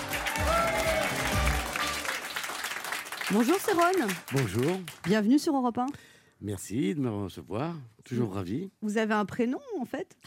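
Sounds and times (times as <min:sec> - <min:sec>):
studio audience clapping and cheering in an ovation for a guest: 0:00.0 - 0:05.4
speech: 0:03.3 - 0:10.2.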